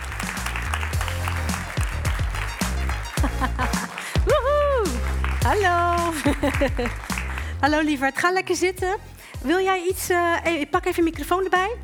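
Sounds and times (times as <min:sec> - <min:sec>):
audience applause: 0:00.0 - 0:07.6
thumping music beat: 0:00.0 - 0:11.6
laughter: 0:03.0 - 0:05.1, 0:05.9 - 0:07.5
speech: 0:03.4 - 0:03.8, 0:05.5 - 0:11.8.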